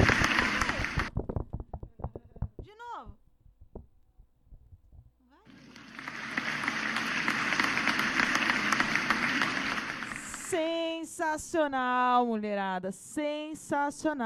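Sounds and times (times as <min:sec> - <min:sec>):
audience applause: 0:00.0 - 0:01.1, 0:05.5 - 0:10.6
speech: 0:11.2 - 0:14.2.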